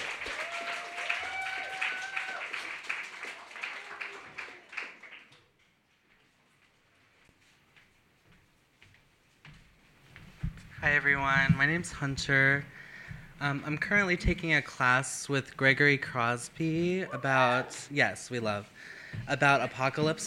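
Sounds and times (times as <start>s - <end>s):
whooping: 0.0s - 4.9s
audience applause: 0.0s - 5.4s
speech: 10.8s - 12.8s, 13.4s - 20.2s.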